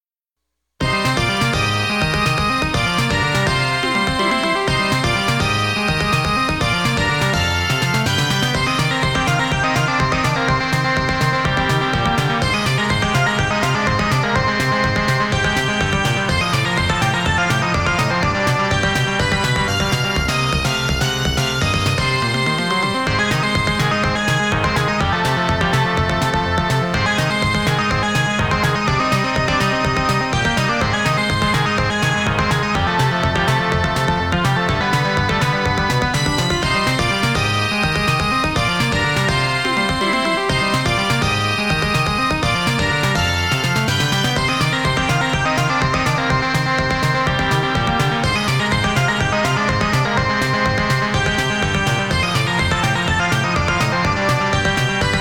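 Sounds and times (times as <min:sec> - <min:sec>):
background music: 0:00.8 - 0:55.2.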